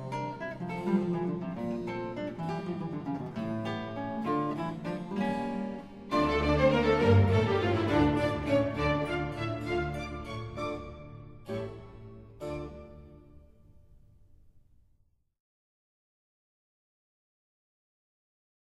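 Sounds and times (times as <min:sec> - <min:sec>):
guitar concerto in D minor with string orchestra: 0:00.0 - 0:14.0.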